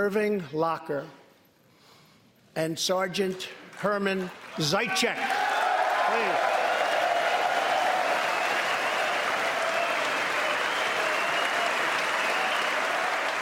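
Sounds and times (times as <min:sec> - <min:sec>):
speech: 0:00.0 - 0:01.2, 0:02.6 - 0:05.4
audience applause for World War II veterans: 0:04.2 - 0:13.3.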